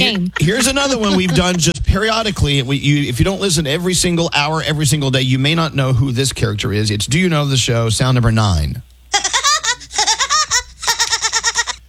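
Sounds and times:
speech: 0.0s - 8.9s
person imitating Woody Woodpecker laugh: 9.1s - 11.8s.

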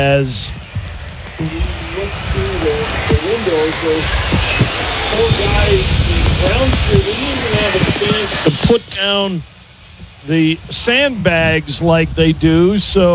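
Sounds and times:
speech: 0.0s - 0.6s, 1.4s - 9.5s, 10.2s - 13.1s
heavy rain outside a broadcast booth at a sports ground: 0.1s - 12.2s.

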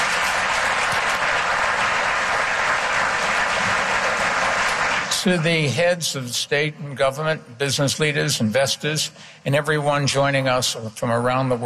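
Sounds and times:
sustained audience applause at a business forum in New York: 0.0s - 5.4s
speech: 5.2s - 11.6s.

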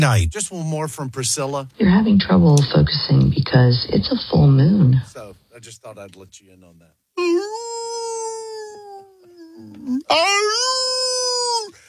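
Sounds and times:
speech: 0.0s - 7.6s, 9.6s - 11.0s
coyotes howling: 9.8s - 11.7s.

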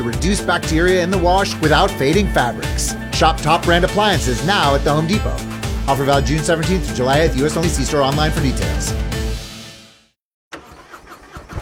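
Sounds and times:
speech: 0.0s - 9.1s
Harley-Davidson motorcycle engine starting: 10.5s - 11.6s.

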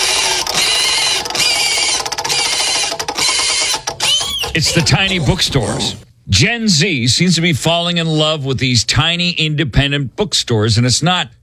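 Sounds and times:
prize wheel spinning and clicking: 0.0s - 4.9s
speech: 4.6s - 11.4s.

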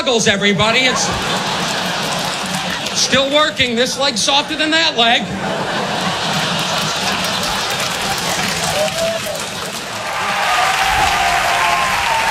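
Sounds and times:
speech: 0.0s - 1.9s, 3.0s - 5.8s
laughter: 0.5s - 12.2s
audience of women cheering: 7.2s - 12.2s.

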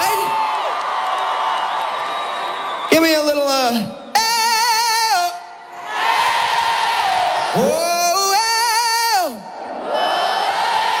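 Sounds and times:
festival crowd cheering: 0.0s - 10.9s
speech: 3.0s - 4.0s.

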